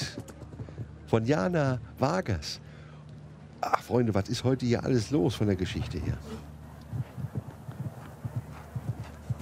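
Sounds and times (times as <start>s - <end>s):
horse hooves clip-clopping: 0.0s - 1.1s, 6.5s - 9.4s
speech: 1.1s - 2.7s, 3.6s - 6.5s.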